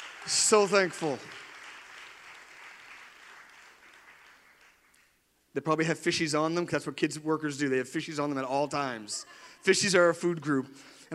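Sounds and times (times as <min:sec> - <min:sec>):
audience applause: 0:00.0 - 0:05.1
speech: 0:00.2 - 0:01.4, 0:05.6 - 0:11.1
laughter: 0:08.8 - 0:10.6.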